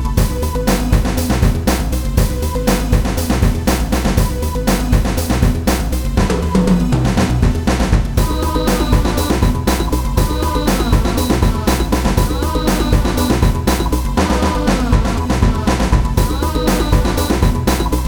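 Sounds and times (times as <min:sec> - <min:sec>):
hip hop intro instrumental: 0:00.1 - 0:18.0.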